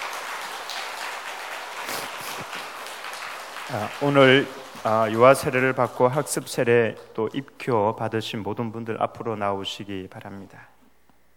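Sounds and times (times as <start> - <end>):
crowd clapping: 0.0 - 7.4
speech: 3.7 - 10.8.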